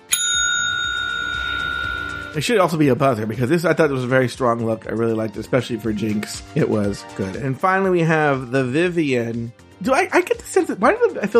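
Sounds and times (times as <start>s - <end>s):
bicycle bell ring: 0.0s - 2.5s
speech: 2.3s - 11.3s.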